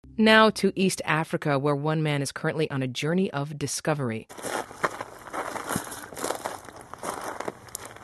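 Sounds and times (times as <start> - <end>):
speech: 0.2 - 4.8
footsteps of journalist Paul Salopek walking in East Africa: 4.3 - 8.0
soft scuffs: 4.3 - 8.0.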